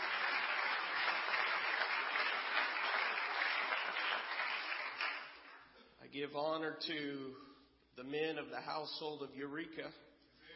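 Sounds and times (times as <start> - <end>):
hand clapping: 0.0 - 5.7
speech: 6.2 - 10.1.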